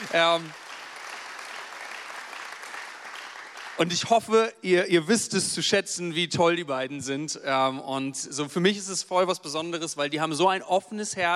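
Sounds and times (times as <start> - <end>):
large crowd applause: 0.0 - 4.2
speech: 0.1 - 0.6, 3.8 - 11.3.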